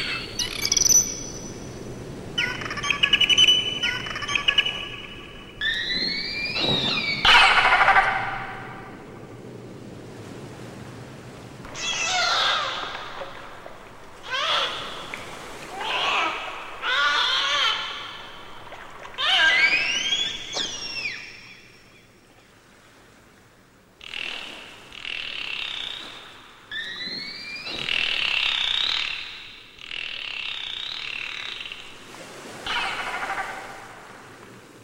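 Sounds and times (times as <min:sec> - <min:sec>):
dolphins vocalizing: 0:02.3 - 0:09.0, 0:11.7 - 0:21.6, 0:24.0 - 0:31.9, 0:32.5 - 0:34.0.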